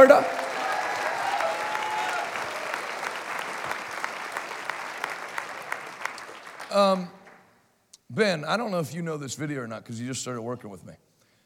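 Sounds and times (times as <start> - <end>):
speech: 0.0 - 0.4, 6.8 - 7.2, 8.1 - 11.1
church congregation clapping in Northport Florida: 0.0 - 7.5.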